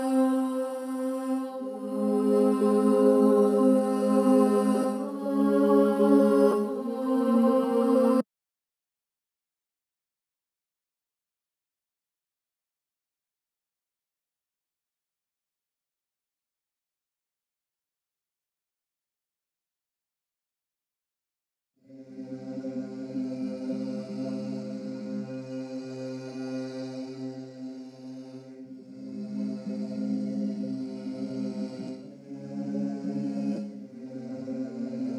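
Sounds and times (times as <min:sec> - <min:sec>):
F minor choir loop: 0:00.0 - 0:08.3, 0:21.8 - 0:35.1.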